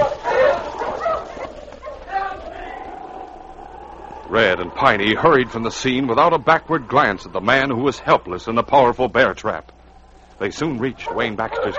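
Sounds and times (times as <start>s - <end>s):
sled huskies barking and yipping: 0.0s - 5.3s, 10.9s - 11.7s
speech: 4.3s - 9.8s, 10.4s - 11.7s.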